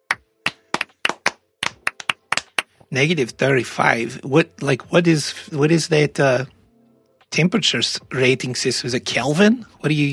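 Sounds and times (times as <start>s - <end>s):
hands clapping: 0.0s - 2.9s
speech: 2.9s - 6.6s, 7.3s - 10.1s.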